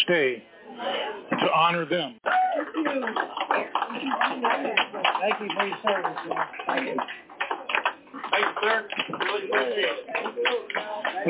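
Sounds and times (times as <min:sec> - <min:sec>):
speech: 0:00.1 - 0:07.3, 0:08.4 - 0:11.2
crowd clapping for a veteran: 0:02.3 - 0:11.2.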